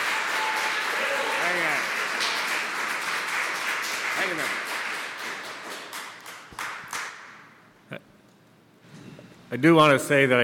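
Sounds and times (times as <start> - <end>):
audience applause: 0.0 - 7.2
speech: 4.2 - 4.7, 9.5 - 10.4.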